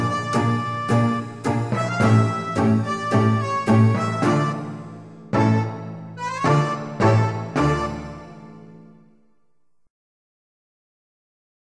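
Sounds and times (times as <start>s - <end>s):
tango music: 0.0s - 9.4s.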